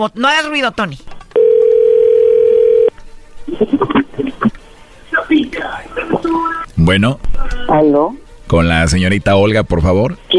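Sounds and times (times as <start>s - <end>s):
speech: 0.0s - 1.1s, 5.3s - 10.3s
telephone dial tone: 1.4s - 2.9s.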